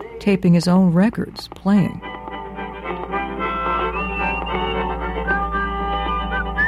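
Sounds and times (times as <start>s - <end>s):
speech: 0.2s - 2.1s
human whistling on an old tape recording: 3.5s - 6.6s.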